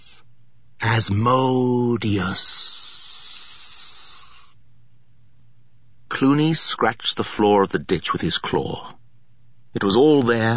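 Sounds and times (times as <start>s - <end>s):
adder's sibilant hiss: 0.0s - 0.2s, 2.1s - 4.6s
speech: 0.9s - 2.8s, 6.2s - 9.0s, 9.8s - 10.5s.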